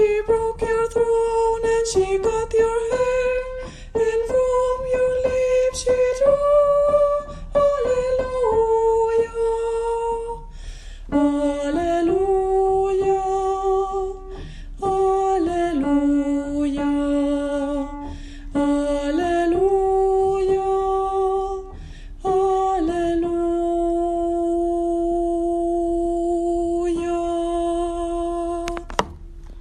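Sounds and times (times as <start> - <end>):
soprano singing: 0.0 - 10.5, 11.1 - 29.0.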